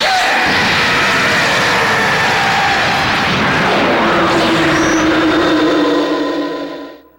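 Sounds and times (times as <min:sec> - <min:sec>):
dragon scream: 0:00.0 - 0:07.1.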